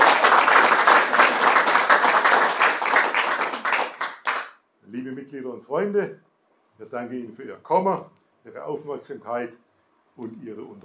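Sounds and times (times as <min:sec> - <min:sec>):
audience applause: 0:00.0 - 0:04.5
speech: 0:05.3 - 0:09.6, 0:10.2 - 0:10.8.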